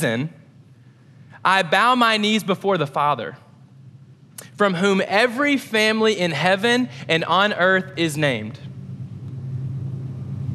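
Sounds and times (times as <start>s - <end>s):
speech: 0.0s - 0.4s, 1.4s - 3.4s, 4.5s - 8.7s
passing train rumble: 8.1s - 10.5s.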